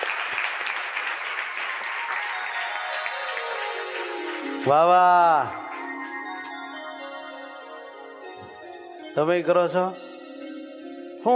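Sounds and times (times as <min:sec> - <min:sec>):
audience applause welcoming a swami: 0:00.0 - 0:06.2
speech: 0:04.6 - 0:05.6, 0:09.2 - 0:10.0.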